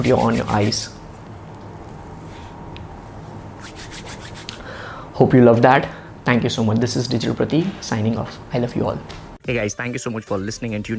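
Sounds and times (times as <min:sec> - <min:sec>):
hands rubbed briskly together to build warmth: 0:00.0 - 0:00.9, 0:03.6 - 0:04.7
speech: 0:00.0 - 0:01.0, 0:05.2 - 0:10.9.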